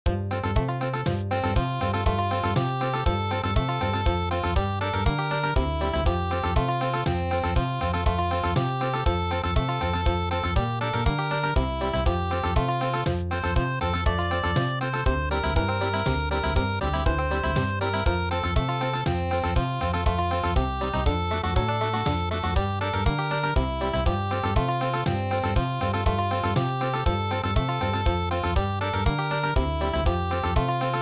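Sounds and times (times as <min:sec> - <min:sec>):
country music: 0:00.1 - 0:30.9.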